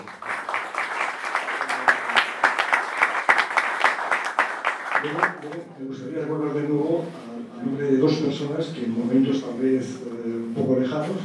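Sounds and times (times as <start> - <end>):
applause: 0.0 - 5.6
speech: 5.0 - 11.2.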